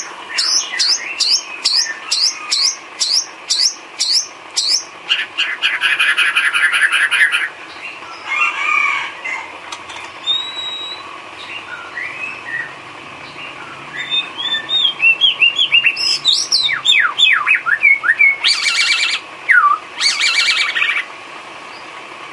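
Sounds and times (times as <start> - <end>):
bird song: 0.0 - 8.5, 9.2 - 22.0.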